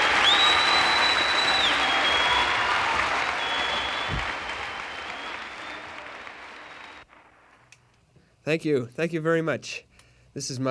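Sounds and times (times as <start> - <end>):
live audience applause: 0.0 - 7.7
speech: 8.5 - 10.6.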